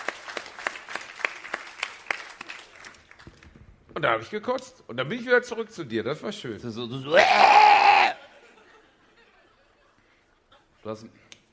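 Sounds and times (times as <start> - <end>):
audience applause: 0.0 - 3.4
speech: 4.0 - 7.7, 10.9 - 11.3
laughter: 7.9 - 10.8.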